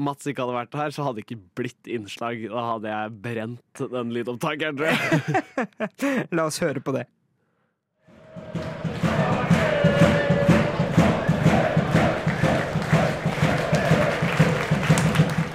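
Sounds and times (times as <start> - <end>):
speech: 0.0 - 7.2
laughter: 4.8 - 6.2
football stadium crowd before a match: 8.1 - 15.5.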